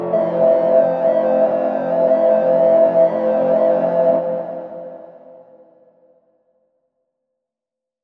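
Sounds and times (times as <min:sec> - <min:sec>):
sine wave tone: 0:00.1 - 0:05.7.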